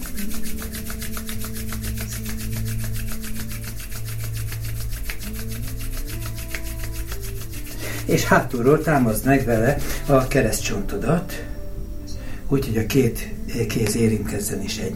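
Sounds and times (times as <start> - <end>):
palms rubbing together to warm them: 0.0 - 10.9
soft sustained music: 0.0 - 14.9
speech: 8.1 - 11.5, 12.5 - 14.9.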